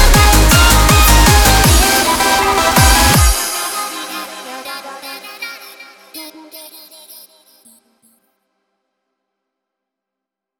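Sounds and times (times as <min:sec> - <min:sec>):
remix: 0:00.0 - 0:08.1.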